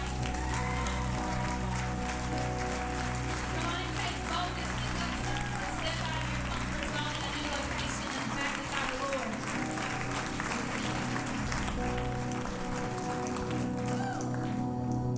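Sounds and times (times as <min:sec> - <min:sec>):
audience applause for praise team: 0:00.0 - 0:15.0.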